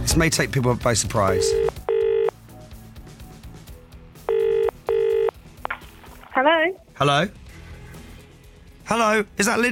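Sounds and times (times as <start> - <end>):
speech: 0.1 - 1.7, 7.0 - 7.4, 8.9 - 9.6
telephone ringback tone: 1.3 - 2.3, 4.3 - 5.3.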